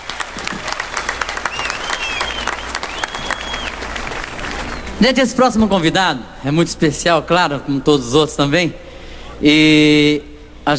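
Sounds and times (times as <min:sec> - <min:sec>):
audience applause: 0:00.0 - 0:05.0
faint whistles: 0:01.4 - 0:03.8
speech: 0:05.0 - 0:08.8, 0:09.4 - 0:10.7.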